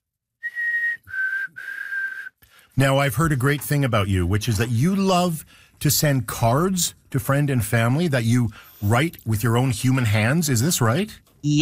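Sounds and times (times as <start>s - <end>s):
person whistling an imitation of a black-capped chickadee call: 0.4s - 2.4s
speech: 2.8s - 11.6s.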